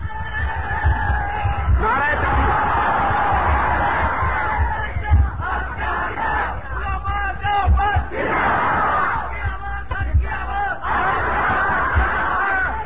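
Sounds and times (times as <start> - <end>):
crowd loudly chanting a slogan at a speaker's call: 0.0 - 12.8.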